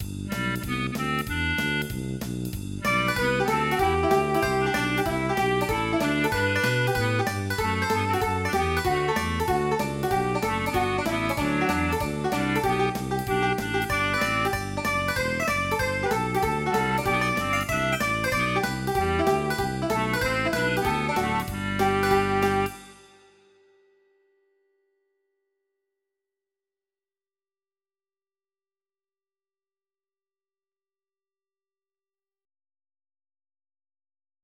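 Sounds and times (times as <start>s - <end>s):
jazz music: 0.0s - 23.2s.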